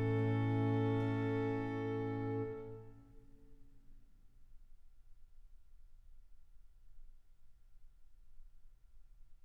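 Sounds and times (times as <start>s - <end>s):
trio sonata in B-flat major allegro: 0.0s - 2.9s.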